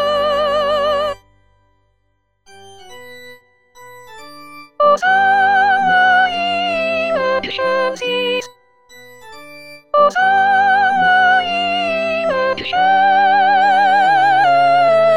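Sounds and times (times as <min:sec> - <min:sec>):
soprano singing a Sanctus: 0:00.0 - 0:01.2, 0:04.8 - 0:08.5, 0:10.0 - 0:15.1.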